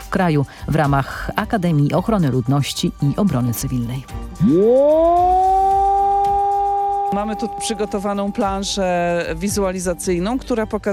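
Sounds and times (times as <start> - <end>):
speech: 0.1 - 5.5, 7.1 - 10.9
modulated civil defense alarm siren wailing: 4.4 - 8.7.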